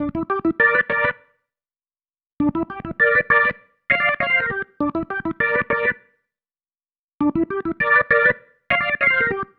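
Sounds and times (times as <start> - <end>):
organ pattern: 0.0 - 1.3, 2.4 - 6.1, 7.2 - 9.5.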